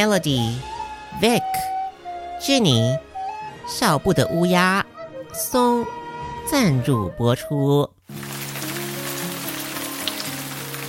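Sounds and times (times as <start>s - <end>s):
speech: 0.0s - 1.8s, 2.4s - 3.1s, 3.7s - 8.2s
rain falling: 8.1s - 10.8s.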